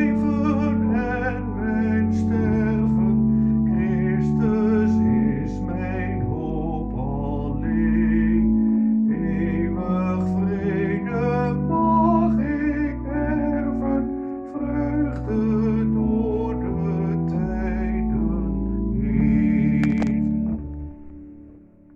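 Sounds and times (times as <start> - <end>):
soprano singing: 0.0 - 21.1.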